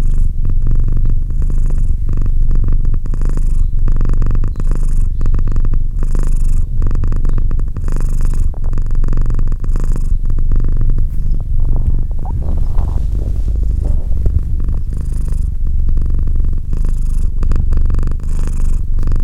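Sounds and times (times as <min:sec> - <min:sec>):
domestic cat purring: 0:00.0 - 0:19.2.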